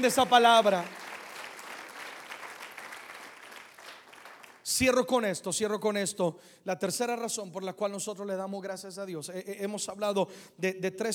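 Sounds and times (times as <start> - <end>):
speech: 0.0 - 1.0, 4.7 - 11.1
audience applause: 0.0 - 4.6.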